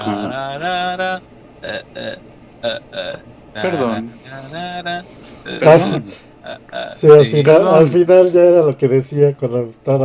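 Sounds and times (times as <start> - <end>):
speech: 0.0 - 10.0
person burping a piece of classical music: 1.6 - 3.2, 6.4 - 7.0.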